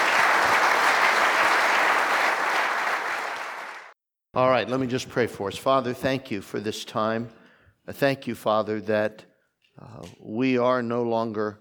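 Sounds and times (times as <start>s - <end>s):
audience applause: 0.0s - 3.9s
speech: 4.4s - 11.5s.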